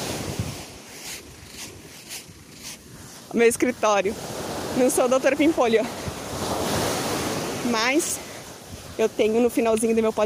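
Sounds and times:
footsteps walking on beach sand: 0:00.0 - 0:03.4
waves washing on a beach: 0:00.0 - 0:10.2
wind noise: 0:00.0 - 0:10.2
speech: 0:03.3 - 0:06.0, 0:07.7 - 0:08.2, 0:09.0 - 0:10.2.

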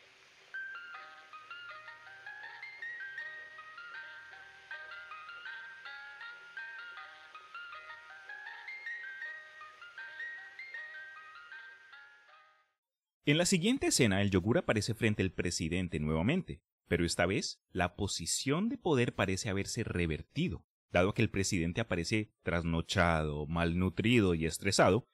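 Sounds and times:
ice cream truck jingle music: 0:00.6 - 0:12.8
speech: 0:13.3 - 0:25.1.

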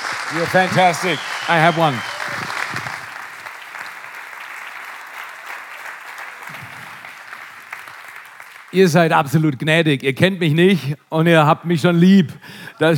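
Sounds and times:
audience applause: 0:00.0 - 0:08.8
speech: 0:00.3 - 0:02.1, 0:08.7 - 0:12.9.

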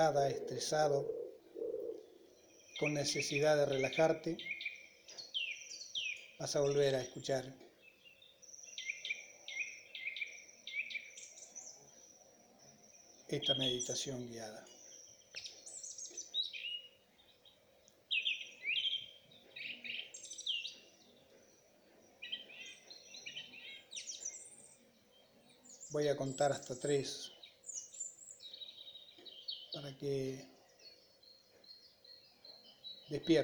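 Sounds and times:
speech: 0:00.0 - 0:01.2, 0:02.8 - 0:04.7, 0:06.4 - 0:07.6, 0:13.3 - 0:14.8, 0:25.9 - 0:27.4, 0:29.8 - 0:30.6, 0:33.1 - 0:33.4
birdsong with high chirps and warbling phrases: 0:00.0 - 0:33.4.

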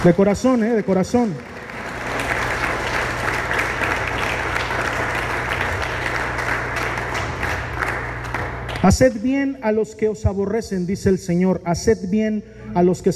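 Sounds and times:
speech: 0:00.0 - 0:01.6, 0:08.8 - 0:13.1
audience applauding loudly: 0:00.0 - 0:09.0.

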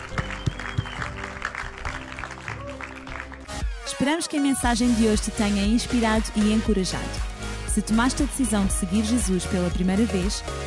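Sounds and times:
audience applause: 0:00.0 - 0:03.7
speech: 0:04.0 - 0:10.6.

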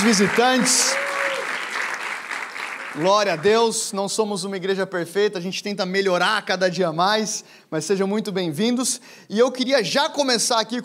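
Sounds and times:
speech: 0:00.0 - 0:01.1, 0:03.0 - 0:10.8
welcoming applause for visitors: 0:00.0 - 0:03.8.

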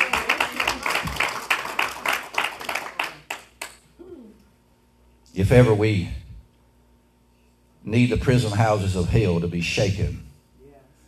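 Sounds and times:
audience clapping hands in praise: 0:00.0 - 0:03.8
speech: 0:05.4 - 0:06.2, 0:07.9 - 0:10.3.

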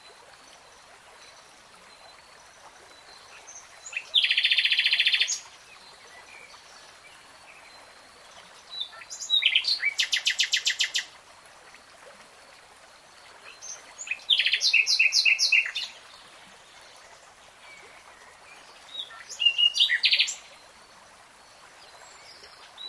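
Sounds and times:
nightingale song: 0:03.0 - 0:11.1, 0:13.4 - 0:20.7, 0:21.8 - 0:22.8.

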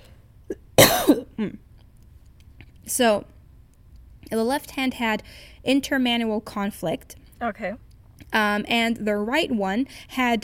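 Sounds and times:
person coughing: 0:00.5 - 0:01.6
speech: 0:01.1 - 0:01.7, 0:02.9 - 0:03.3, 0:04.3 - 0:10.4.

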